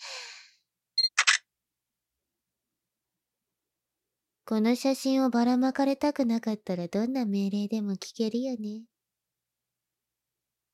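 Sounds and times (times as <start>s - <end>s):
breathy sigh: 0.0s - 0.6s
camera shutter click: 1.2s - 1.4s
speech: 4.5s - 8.9s.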